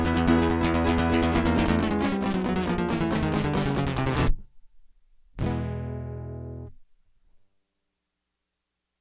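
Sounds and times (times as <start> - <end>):
guitar interlude: 0.0 - 6.9.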